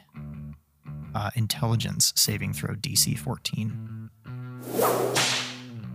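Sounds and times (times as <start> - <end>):
speech: 1.2 - 4.1
whip crack sound effect: 4.6 - 5.8.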